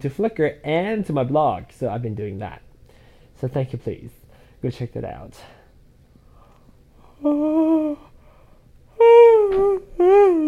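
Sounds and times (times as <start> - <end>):
speech: 0.0 - 2.7, 3.4 - 5.6, 7.2 - 8.0
big drawn-out yawn with voiced moaning tone: 7.1 - 8.2, 9.0 - 10.4.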